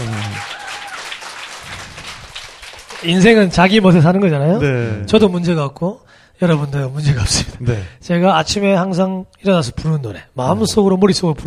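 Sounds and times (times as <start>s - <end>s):
applause: 0.0s - 3.6s
speech: 3.0s - 11.4s.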